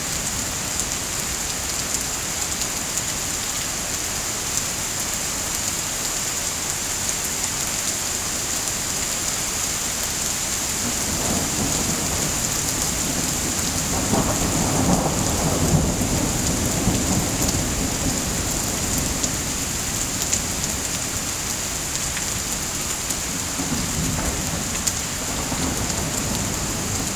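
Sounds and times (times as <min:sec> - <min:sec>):
rain: 0:00.0 - 0:27.1
thunder: 0:10.8 - 0:19.6, 0:23.5 - 0:27.1.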